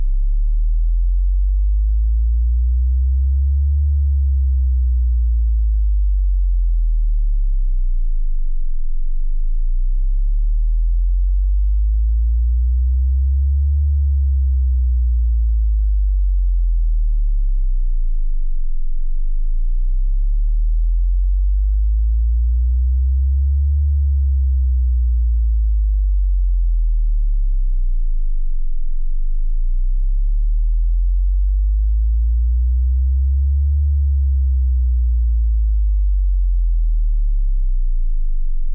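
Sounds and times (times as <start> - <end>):
20 Hz to 80 Hz tone sweep: 0.0 - 38.7.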